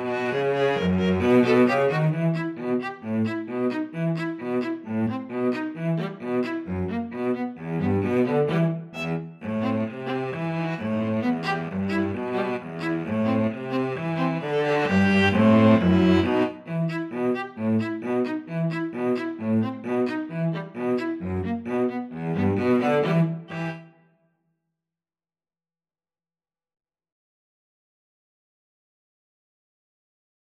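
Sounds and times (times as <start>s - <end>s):
string trio playing: 0.0s - 23.9s.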